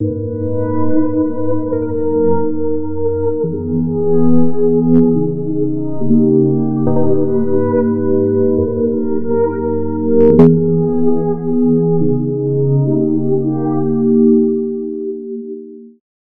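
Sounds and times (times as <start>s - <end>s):
synth pad: 0.0s - 16.0s.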